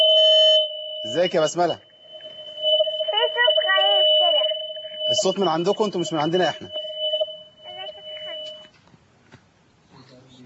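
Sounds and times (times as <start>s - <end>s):
steady electronic tone as a phone call drops: 0.0s - 8.7s
speech: 1.0s - 1.9s, 5.1s - 6.8s
low voices: 1.0s - 6.8s.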